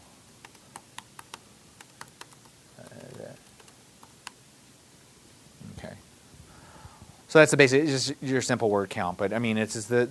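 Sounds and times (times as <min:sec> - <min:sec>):
low steady hiss: 0:00.0 - 0:10.0
quiet typing on a computer keyboard: 0:00.4 - 0:04.4
speech: 0:07.3 - 0:10.0.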